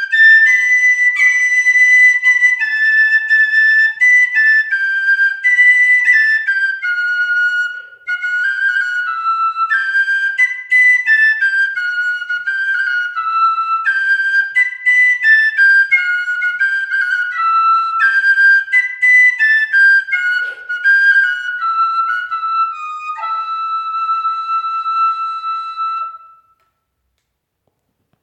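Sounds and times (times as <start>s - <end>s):
flute: 0.0s - 26.8s.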